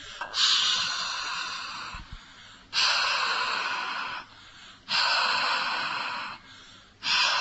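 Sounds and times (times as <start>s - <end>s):
voiceless exhaled breaths haa: 0.0s - 7.4s.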